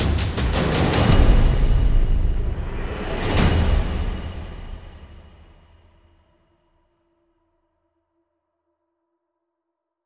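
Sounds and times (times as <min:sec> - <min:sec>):
drums and percussion: 0:00.0 - 0:06.1.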